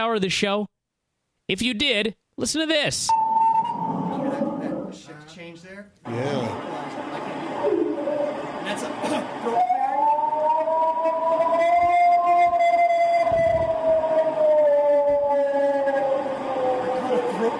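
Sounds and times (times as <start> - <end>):
speech: 0.0 - 0.8, 1.5 - 4.0, 4.6 - 7.8, 8.7 - 9.7
purported Bigfoot howl: 9.5 - 17.4.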